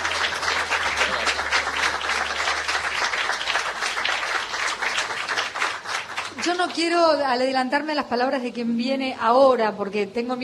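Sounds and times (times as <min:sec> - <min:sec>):
loud sustained audience applause: 0:00.0 - 0:07.0
speech: 0:06.7 - 0:10.4.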